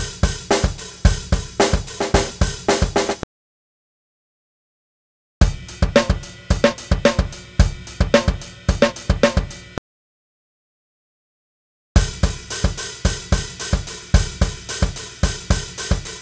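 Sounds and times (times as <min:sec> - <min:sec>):
funk drum loop at 110 BPM: 0:00.0 - 0:03.2, 0:05.4 - 0:09.8, 0:12.0 - 0:16.1.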